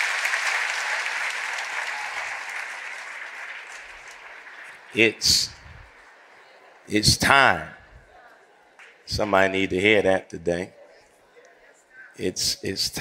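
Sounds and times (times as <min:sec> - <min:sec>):
audience clapping hands: 0:00.0 - 0:06.9
speech: 0:04.9 - 0:05.6, 0:06.9 - 0:07.8, 0:09.1 - 0:10.8, 0:12.2 - 0:12.9.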